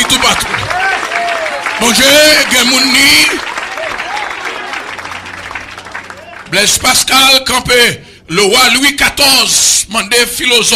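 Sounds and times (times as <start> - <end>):
audience applause: 0.0 - 6.8
speech: 0.2 - 0.9, 1.8 - 3.5, 6.5 - 10.7.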